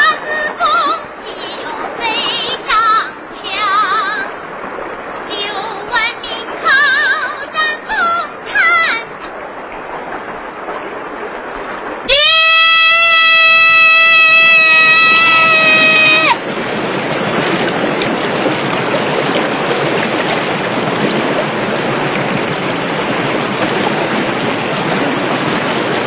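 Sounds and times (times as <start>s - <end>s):
surging river water roaring: 0.0s - 26.0s
high wailing tone: 12.1s - 16.4s.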